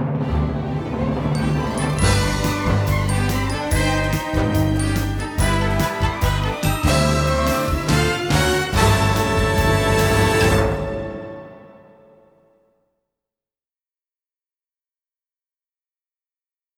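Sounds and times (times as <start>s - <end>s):
fanfare: 0.2s - 12.4s.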